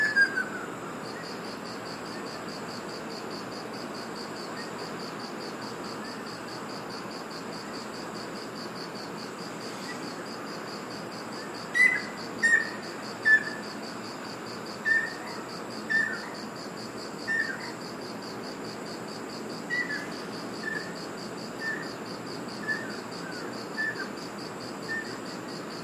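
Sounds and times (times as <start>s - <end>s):
Ruddy kingfisher whistles: 0.0s - 0.7s, 11.7s - 13.6s, 14.8s - 16.4s, 17.3s - 17.7s, 19.7s - 20.9s, 21.6s - 21.9s, 22.6s - 23.0s, 23.8s - 24.1s
pulsing insect calls: 0.0s - 25.8s.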